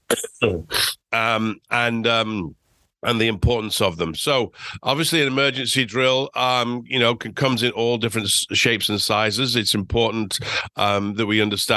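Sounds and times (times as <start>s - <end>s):
person coughing: 0.0s - 1.0s
speech: 0.4s - 11.7s.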